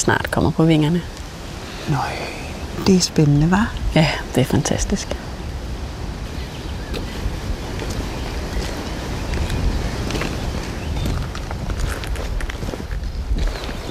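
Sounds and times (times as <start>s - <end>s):
speech: 0.0s - 1.2s, 1.8s - 5.2s
footsteps walking through a Danish beech forest: 7.0s - 13.8s.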